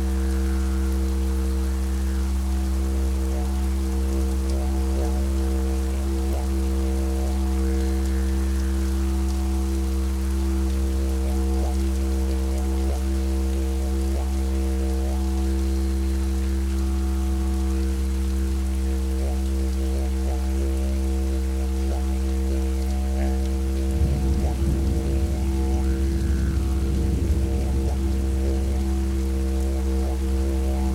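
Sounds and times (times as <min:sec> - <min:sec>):
ambient didgeridoo: 0:00.0 - 0:30.9.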